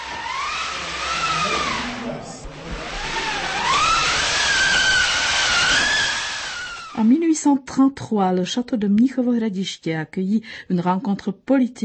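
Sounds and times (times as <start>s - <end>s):
hand-cranked theatre wind machine imitating wind: 0.0s - 7.0s
speech: 7.0s - 11.8s.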